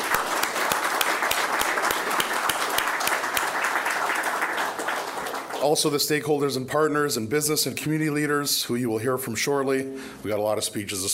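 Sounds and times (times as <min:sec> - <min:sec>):
audience applause: 0:00.0 - 0:05.9
speech: 0:05.6 - 0:11.1.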